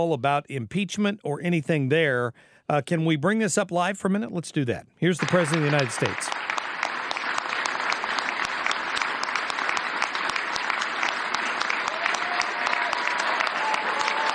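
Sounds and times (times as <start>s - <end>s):
speech: 0.0s - 6.5s
large audience applause: 5.2s - 14.3s.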